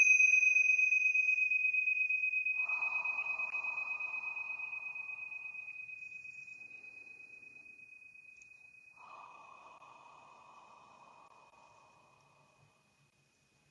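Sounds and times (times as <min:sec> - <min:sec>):
tingsha bells ringing: 0:00.0 - 0:09.6.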